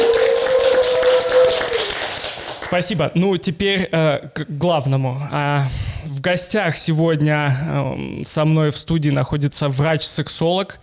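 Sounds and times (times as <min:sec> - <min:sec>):
audience clapping hands: 0:00.0 - 0:03.0
speech: 0:02.7 - 0:10.8.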